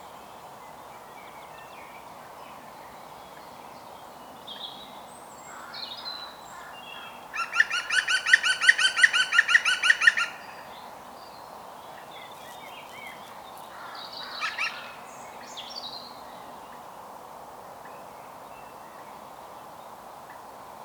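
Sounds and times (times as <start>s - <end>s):
European green woodpecker Picus viridis laughing calls: 7.4s - 10.4s.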